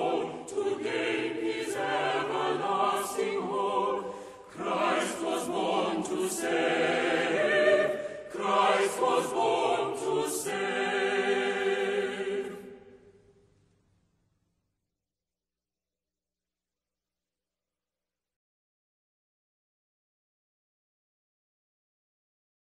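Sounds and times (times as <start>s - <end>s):
chamber choir singing a Christmas carol: 0.0s - 13.1s.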